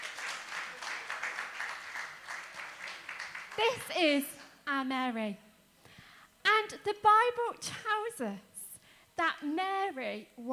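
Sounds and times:
round of applause: 0:00.0 - 0:04.5
speech: 0:03.6 - 0:05.4, 0:06.7 - 0:08.5, 0:09.2 - 0:10.5.

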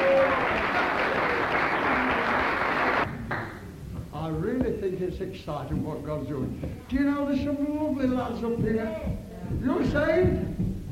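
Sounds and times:
audience clapping: 0:00.0 - 0:03.6
speech: 0:05.1 - 0:10.7.

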